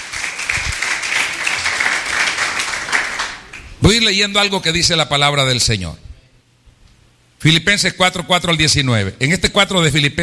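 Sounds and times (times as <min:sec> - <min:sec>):
audience applause: 0:00.0 - 0:03.6
speech: 0:03.9 - 0:06.1, 0:07.4 - 0:10.2.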